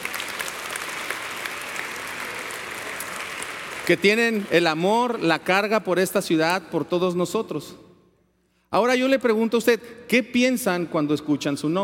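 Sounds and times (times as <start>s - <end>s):
audience applause: 0.0s - 4.8s
speech: 3.9s - 7.8s, 8.7s - 11.8s.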